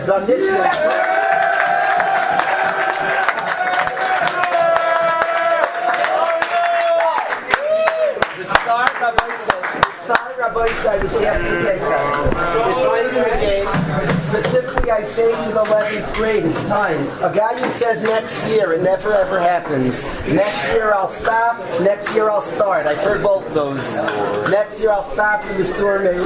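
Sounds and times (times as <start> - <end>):
speech: 0.0 - 1.1, 9.1 - 26.2
students cheering and whooping: 0.4 - 8.8
scattered sharp claps: 0.6 - 11.5, 13.7 - 16.9.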